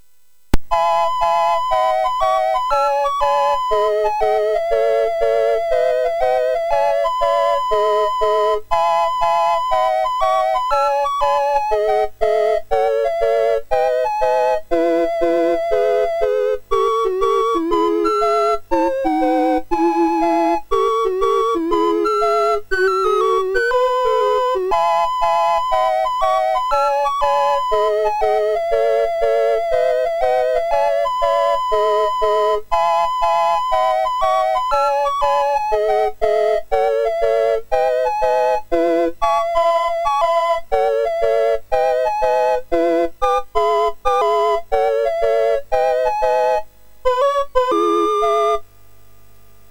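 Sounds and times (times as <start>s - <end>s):
MOS6581R3 SID chip sound: 0.7s - 48.6s.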